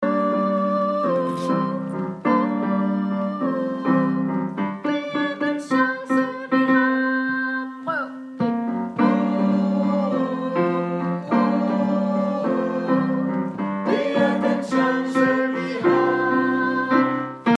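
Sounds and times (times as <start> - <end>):
tenor vocals: 0.0 - 17.5.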